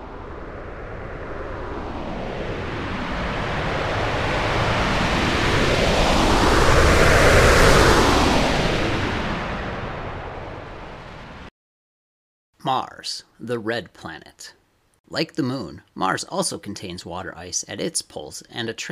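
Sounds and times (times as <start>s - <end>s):
rocket launch sound effect: 0.0s - 11.5s
speech: 13.0s - 18.9s.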